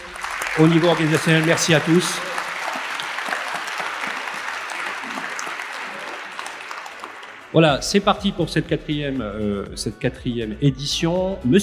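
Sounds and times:
audience applause: 0.0s - 7.8s
speech: 0.6s - 2.4s, 7.6s - 11.6s.

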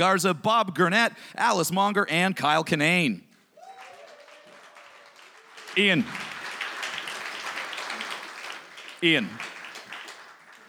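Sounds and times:
speech: 0.0s - 3.3s, 5.8s - 6.3s, 9.0s - 9.5s
audience applause: 3.6s - 10.6s.

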